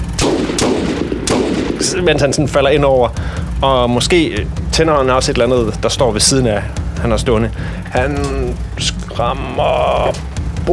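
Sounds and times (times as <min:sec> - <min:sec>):
pistol gunshots: 0:00.0 - 0:02.2
speech: 0:01.8 - 0:10.7.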